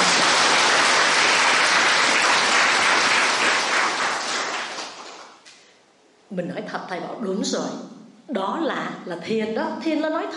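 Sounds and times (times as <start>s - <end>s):
crowd clapping: 0.0s - 5.5s
speech: 6.4s - 10.3s.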